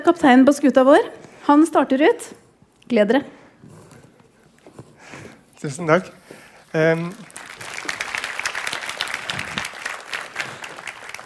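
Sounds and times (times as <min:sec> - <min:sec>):
speech: 0:00.0 - 0:03.4, 0:05.6 - 0:07.3
audience applause: 0:06.7 - 0:11.2.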